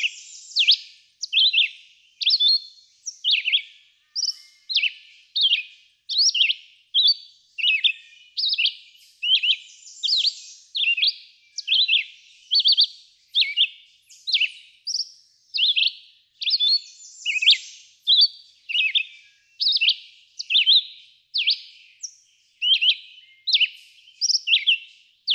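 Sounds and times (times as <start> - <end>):
red-eyed vireo song: 0.0 - 25.3.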